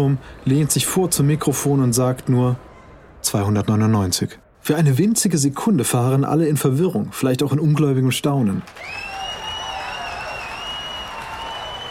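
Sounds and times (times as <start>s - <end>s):
speech: 0.0s - 9.1s
wild clapping: 8.6s - 11.8s
audience cheering: 8.7s - 11.8s
whistling: 8.8s - 11.8s.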